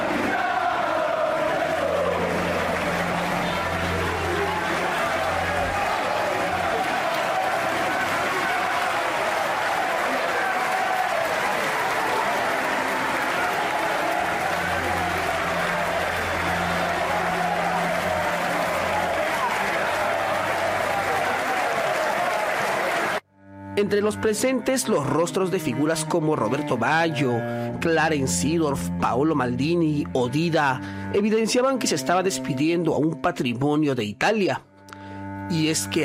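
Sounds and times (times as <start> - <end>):
large outdoor crowd clapping: 0.0 - 23.2
speech: 23.8 - 34.7, 35.5 - 36.0.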